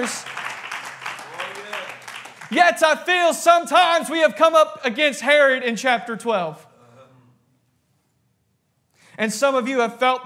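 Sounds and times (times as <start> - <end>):
speech: 0.0 - 0.4, 2.5 - 6.7, 9.2 - 10.2
audience clapping: 0.0 - 3.2.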